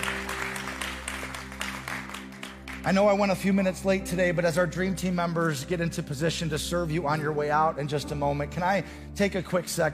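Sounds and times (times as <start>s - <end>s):
church congregation clapping: 0.0s - 3.5s
speech: 2.8s - 9.9s.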